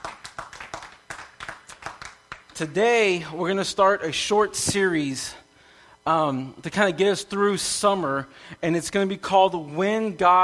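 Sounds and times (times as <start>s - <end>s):
round of applause: 0.0s - 2.6s
speech: 2.6s - 5.4s, 6.1s - 10.4s.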